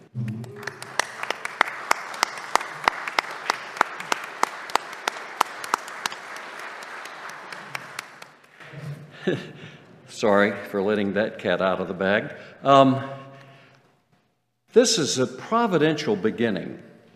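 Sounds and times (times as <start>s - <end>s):
audience applauding: 0.0s - 8.6s
speech: 9.2s - 9.6s, 10.2s - 13.2s, 14.8s - 16.9s.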